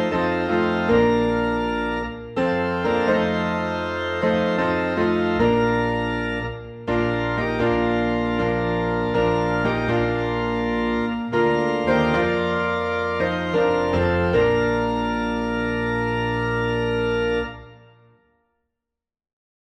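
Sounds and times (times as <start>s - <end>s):
organ playing a hymn in B flat: 0.0s - 18.1s
piano playing a hymn in B flat: 0.0s - 18.4s.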